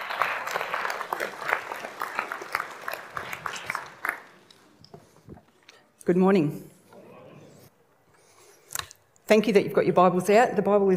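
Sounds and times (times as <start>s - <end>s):
church congregation applause welcoming a preacher: 0.0s - 4.6s
speech: 6.1s - 6.7s, 9.3s - 10.9s.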